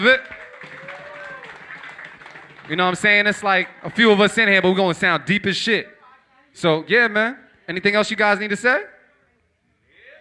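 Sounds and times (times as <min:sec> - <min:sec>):
speech: 0:00.0 - 0:00.4, 0:02.7 - 0:06.0, 0:06.6 - 0:08.9
audience clapping: 0:00.0 - 0:04.5.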